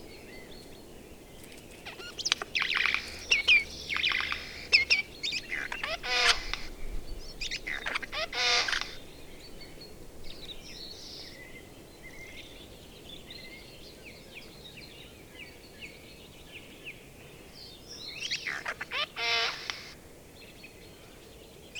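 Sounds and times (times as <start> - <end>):
Eurasian jay Garrulus glandarius making harsh noisy rasping bursts: 1.9 - 6.8, 7.6 - 9.0, 18.7 - 19.9.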